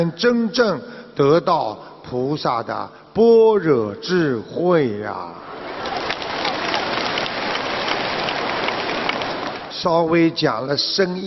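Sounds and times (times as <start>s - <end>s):
speech: 0.0s - 5.5s, 9.8s - 11.2s
audience applause: 5.5s - 9.8s.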